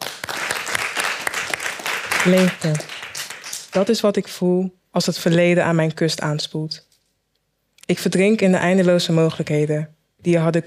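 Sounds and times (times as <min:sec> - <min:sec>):
warm audience applause: 0:00.0 - 0:03.9
speech: 0:02.2 - 0:02.9, 0:03.7 - 0:06.9, 0:07.9 - 0:10.6.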